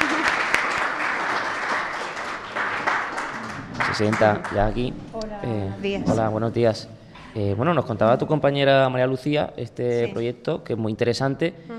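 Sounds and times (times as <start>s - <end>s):
audience applause: 0.0s - 4.9s
speech: 4.0s - 11.7s.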